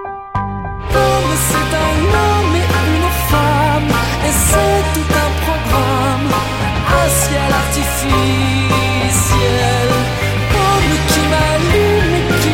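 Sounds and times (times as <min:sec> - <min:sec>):
march music: 0:00.5 - 0:12.5.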